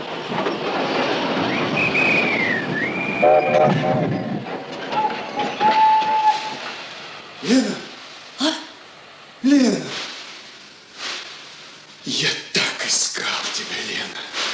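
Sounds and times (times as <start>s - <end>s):
armoured train rumbling at Grebeshki station: 0.0s - 14.5s
armoured train whistle: 1.5s - 4.3s, 4.9s - 6.7s
speech: 3.2s - 4.3s, 7.5s - 7.8s.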